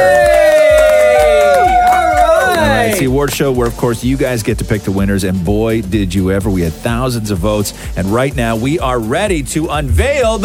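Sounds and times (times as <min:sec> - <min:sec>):
audience cheering and whooping: 0:00.0 - 0:03.2
speech: 0:03.2 - 0:10.4.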